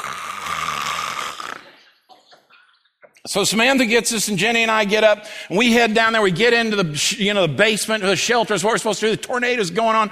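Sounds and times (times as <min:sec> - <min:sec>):
voice imitating CPAP mask breathing noise at night: 0:00.0 - 0:01.8
speech: 0:03.3 - 0:10.0.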